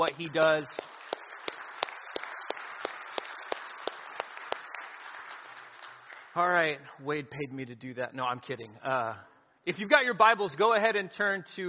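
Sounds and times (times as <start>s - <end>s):
speech: 0.0s - 0.9s, 6.4s - 11.6s
roomful of people applauding: 0.0s - 6.7s
sharp evenly spaced clap: 0.0s - 6.7s.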